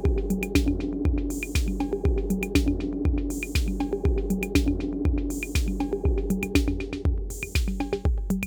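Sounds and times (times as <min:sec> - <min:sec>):
tape delay echo: 0:00.0 - 0:08.3.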